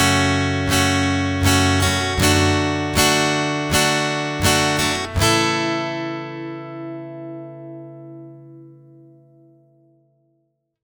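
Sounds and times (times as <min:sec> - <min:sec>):
strumming pattern with capo 2: 0:00.0 - 0:09.2.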